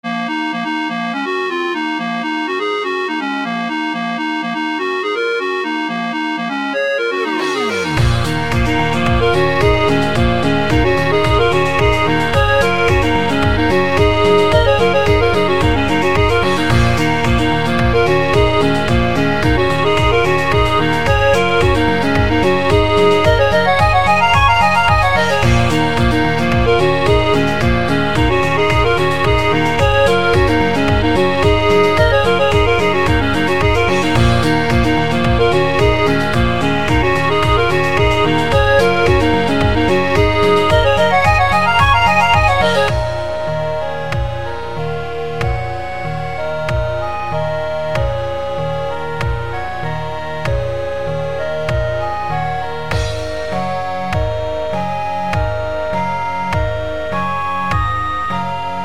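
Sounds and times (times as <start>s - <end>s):
chiptune music: 0.0s - 58.8s.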